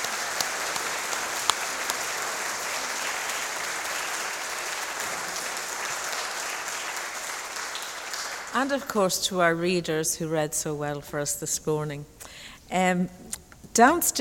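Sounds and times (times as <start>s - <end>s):
audience applause: 0.0s - 8.7s
speech: 8.5s - 13.2s, 13.8s - 14.1s.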